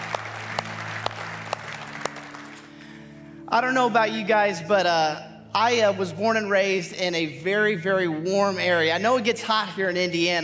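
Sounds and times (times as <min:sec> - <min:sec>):
sharp applause claps: 0:00.0 - 0:02.9
speech: 0:03.5 - 0:10.4.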